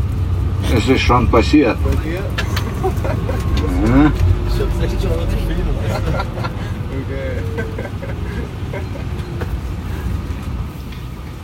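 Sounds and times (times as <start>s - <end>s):
bus cruising at 100 km/h on the Autobahn: 0.0s - 11.4s
speech: 0.7s - 8.0s
laughter: 2.1s - 10.3s.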